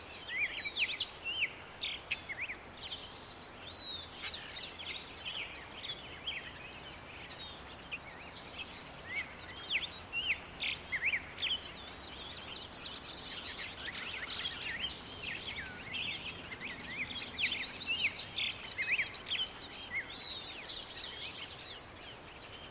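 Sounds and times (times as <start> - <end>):
forest ambience: 0.0 - 22.6.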